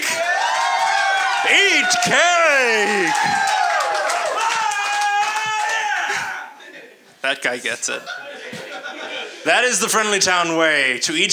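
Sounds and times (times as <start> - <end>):
audience applause: 0.0 - 6.2
cheering voices: 0.0 - 6.6
speech: 1.5 - 3.6, 7.2 - 8.3, 9.4 - 11.3
laughter: 7.9 - 9.9.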